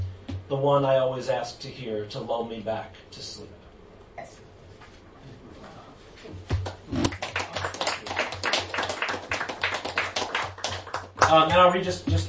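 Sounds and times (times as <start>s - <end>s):
speech: 0.5s - 3.6s, 11.3s - 12.2s
audience clapping: 6.5s - 11.7s.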